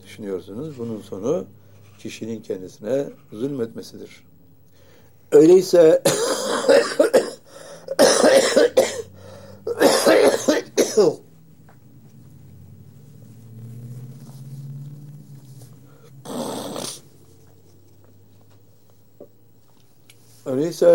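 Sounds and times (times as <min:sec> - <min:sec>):
speech: 0:00.1 - 0:04.3, 0:05.3 - 0:07.2, 0:11.0 - 0:11.3, 0:20.5 - 0:20.9
speaker coughing during a Turkish-language religious talk: 0:06.0 - 0:11.2.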